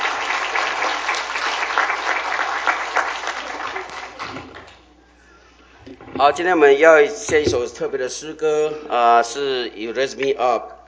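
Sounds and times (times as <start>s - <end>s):
audience applause: 0.0s - 4.7s
speech: 6.2s - 10.8s.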